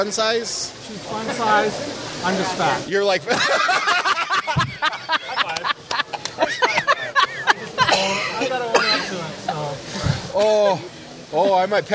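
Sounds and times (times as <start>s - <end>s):
speech: 0.0s - 5.0s, 10.4s - 11.9s
laughter: 3.2s - 10.4s
cough: 7.8s - 9.2s.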